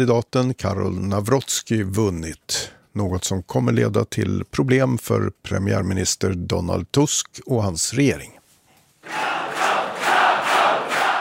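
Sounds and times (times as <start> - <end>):
speech: 0.0 - 8.4
crowd cheering at Rafał Trzaskowski's election night party in Warsaw: 9.0 - 11.1.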